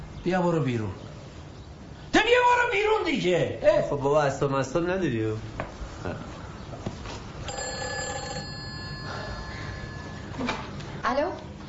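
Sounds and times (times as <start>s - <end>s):
speech: 0.2s - 1.0s, 2.2s - 6.3s
telephone ringing: 7.4s - 10.8s.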